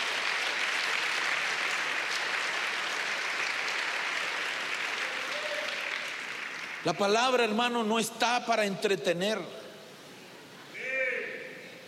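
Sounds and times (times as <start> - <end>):
audience applause: 0.0 - 7.5
speech: 6.8 - 9.6.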